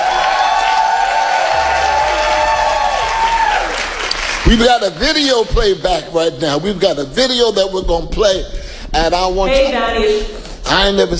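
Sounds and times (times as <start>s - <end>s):
crowd screaming and cheering: 0.0s - 4.6s
audience applauding: 0.0s - 5.3s
speech: 4.5s - 11.1s.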